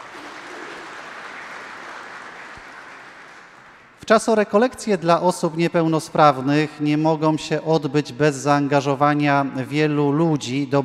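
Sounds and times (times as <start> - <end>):
applause: 0.0 - 4.0
speech: 4.1 - 10.8.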